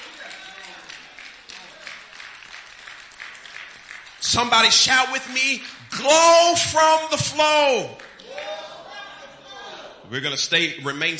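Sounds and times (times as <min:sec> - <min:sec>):
audience clapping hands: 0:00.0 - 0:08.9
speech: 0:04.2 - 0:08.0, 0:10.1 - 0:11.1.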